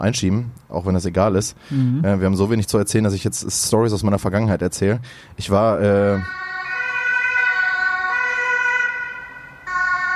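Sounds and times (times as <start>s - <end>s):
speech: 0.0s - 6.5s
fire brigade command vehicle two-tone siren passing: 6.2s - 10.1s.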